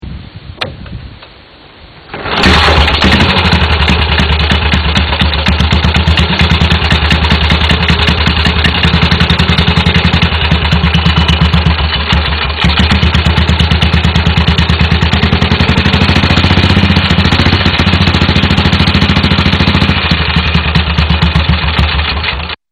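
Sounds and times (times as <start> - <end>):
motorcycle starting: 2.0 - 22.6.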